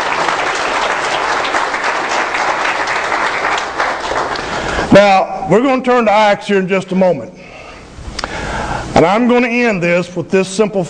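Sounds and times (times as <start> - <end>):
audience applause: 0.0 - 4.9
speech: 5.0 - 7.4, 9.0 - 10.8.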